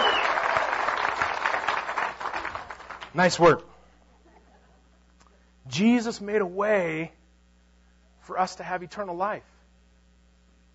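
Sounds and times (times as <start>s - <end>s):
high whoop: 0.0s - 0.8s
crowd clapping and cheering: 0.0s - 3.5s
speech: 3.1s - 3.7s, 5.7s - 7.2s, 8.3s - 9.6s.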